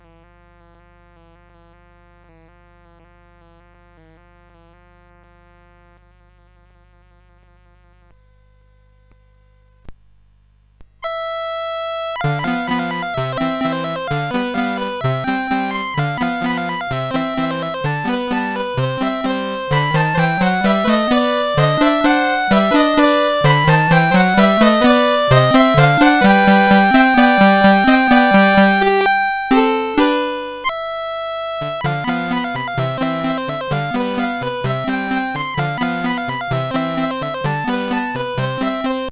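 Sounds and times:
chiptune polka: 11.0 - 39.0.

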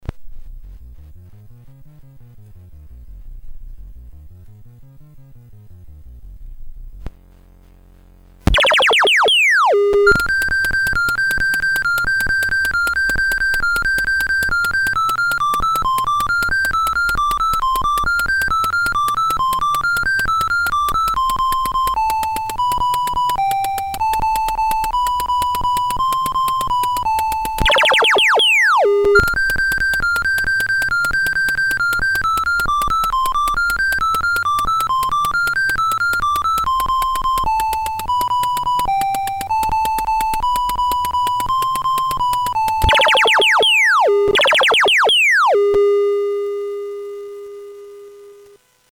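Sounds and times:
CSG8580R5 sound chip game music: 8.5 - 46.0.

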